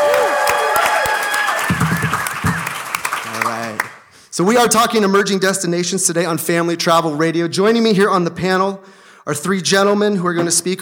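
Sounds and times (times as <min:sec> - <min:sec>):
crowd cheering and whooping: 0:00.0 - 0:03.4
crowd applauding: 0:00.0 - 0:04.1
speech: 0:04.4 - 0:10.8.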